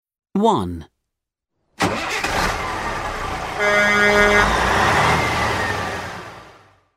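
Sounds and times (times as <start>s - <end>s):
speech: 0.4s - 0.9s, 3.6s - 4.6s
lorry engine rumble: 1.8s - 6.8s.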